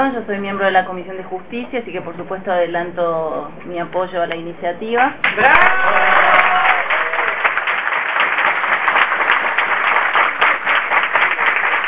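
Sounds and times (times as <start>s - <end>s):
speech: 0.0s - 6.3s
crowd applause: 5.2s - 11.8s.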